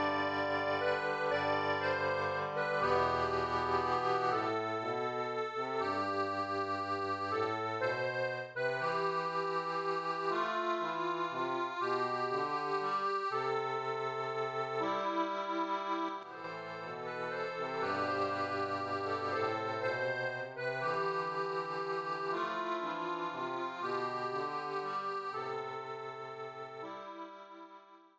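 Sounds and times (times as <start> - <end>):
accordion: 0.0 - 28.1.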